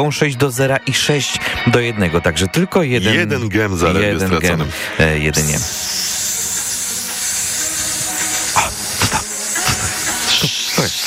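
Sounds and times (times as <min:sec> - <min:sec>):
speech: 0:00.0 - 0:06.0
snake hissing: 0:05.3 - 0:11.0.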